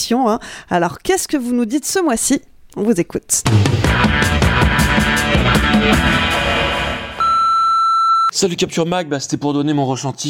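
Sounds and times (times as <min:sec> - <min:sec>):
speech: 0:00.1 - 0:06.4, 0:08.3 - 0:10.2
answering machine beep: 0:07.2 - 0:08.3.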